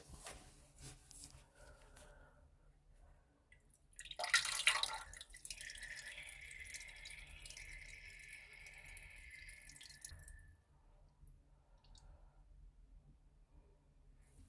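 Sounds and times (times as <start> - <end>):
person with a cold urinating: 3.9 - 10.4.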